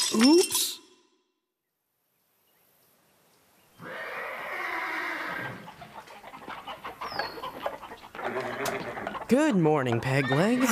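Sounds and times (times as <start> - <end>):
speech: 0.1 - 0.6, 9.3 - 10.7
spooked horse whinnying in a barn: 3.8 - 5.7, 8.2 - 9.2, 10.1 - 10.7
clucking fowl: 5.4 - 10.7.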